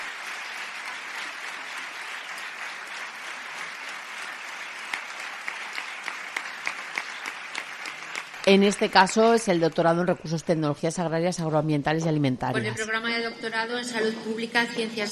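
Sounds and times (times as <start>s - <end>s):
audience applause for new doctoral graduates: 0.0s - 10.1s
speech: 8.5s - 15.1s.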